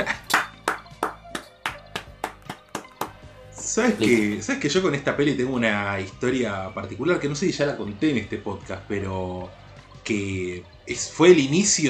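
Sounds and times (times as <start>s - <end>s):
single person clapping hands: 0.0s - 3.3s
speech: 3.8s - 11.8s.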